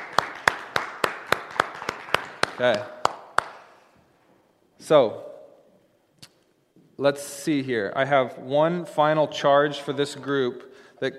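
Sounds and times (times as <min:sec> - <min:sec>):
audience applause: 0:00.0 - 0:03.7
speech: 0:02.6 - 0:03.0, 0:04.8 - 0:05.3, 0:07.0 - 0:11.1.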